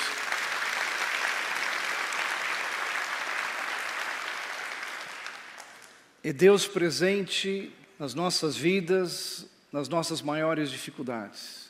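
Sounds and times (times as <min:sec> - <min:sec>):
applause: 0:00.0 - 0:06.2
speech: 0:06.2 - 0:11.6.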